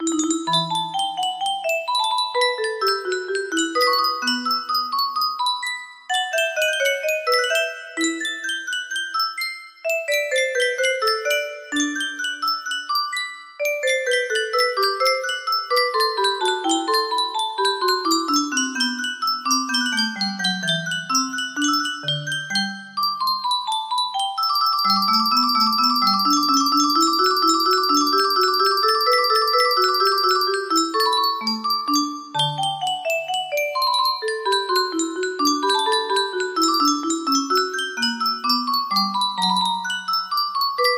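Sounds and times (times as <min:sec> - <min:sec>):
music box melody in E minor: 0:00.0 - 0:40.9.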